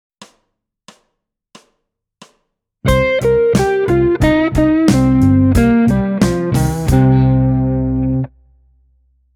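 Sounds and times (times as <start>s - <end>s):
blues music: 2.9s - 8.3s.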